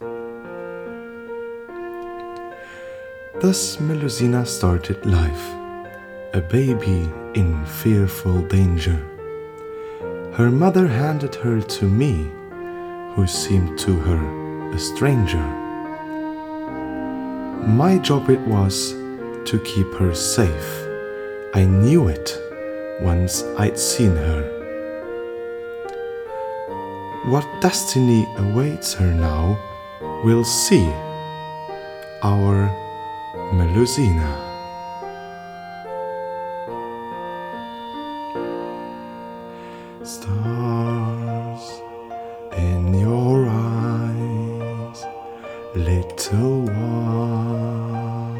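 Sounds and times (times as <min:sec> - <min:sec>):
lullaby: 0:00.0 - 0:48.3
voiceover: 0:02.2 - 0:25.3, 0:25.9 - 0:37.0, 0:40.0 - 0:48.3.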